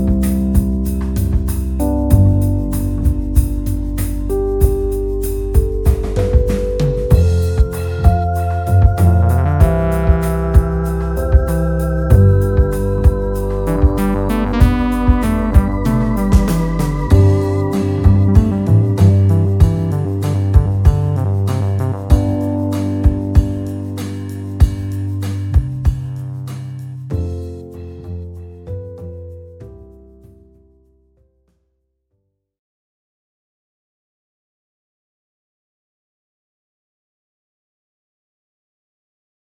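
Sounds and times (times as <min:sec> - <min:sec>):
drummer playing a solid drum kit: 0:00.0 - 0:28.0.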